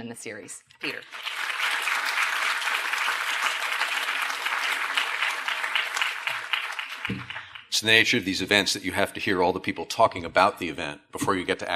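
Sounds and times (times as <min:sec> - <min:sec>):
speech: 0:00.0 - 0:01.4, 0:07.1 - 0:11.7
audience applause: 0:01.0 - 0:07.8.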